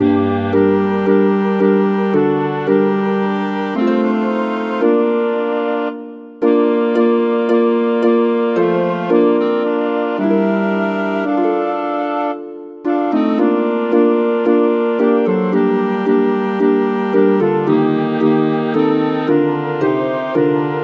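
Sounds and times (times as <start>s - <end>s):
harp: 0.0s - 20.8s
wind quartet: 0.0s - 20.8s.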